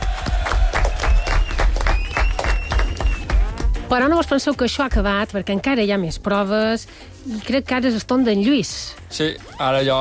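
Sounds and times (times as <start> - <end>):
audience applause: 0.0 - 3.6
speech: 3.9 - 9.9.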